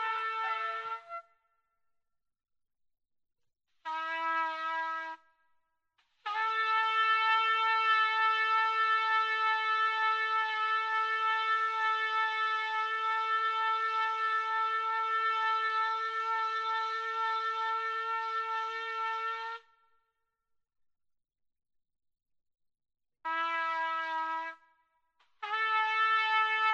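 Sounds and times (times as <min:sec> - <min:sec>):
trumpet loop: 0:00.0 - 0:01.3, 0:03.9 - 0:05.2, 0:06.3 - 0:19.6, 0:23.3 - 0:24.6, 0:25.4 - 0:26.7.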